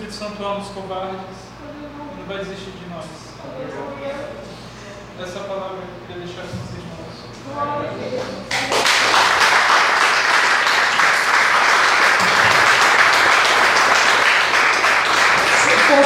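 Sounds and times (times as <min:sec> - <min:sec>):
speech: 0:00.2 - 0:04.6, 0:05.2 - 0:09.3
audience applauding: 0:08.5 - 0:16.0.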